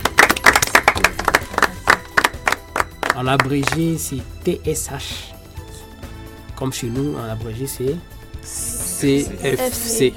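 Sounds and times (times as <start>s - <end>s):
applause for quiz answer: 0.0s - 4.0s
speech: 3.2s - 5.3s, 6.6s - 10.1s.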